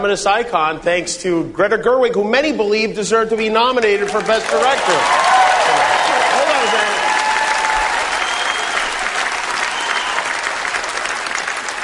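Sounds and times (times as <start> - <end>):
speech: 0.0 - 5.4
audience applause: 3.9 - 11.8.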